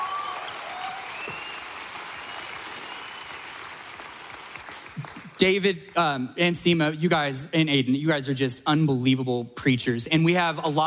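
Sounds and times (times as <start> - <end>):
audience applause: 0.0 - 5.4
speech: 5.4 - 10.8.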